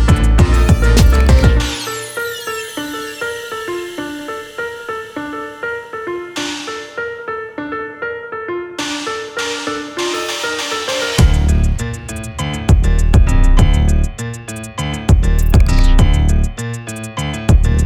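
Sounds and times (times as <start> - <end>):
piano trap beat in D minor: 0.0 - 17.8.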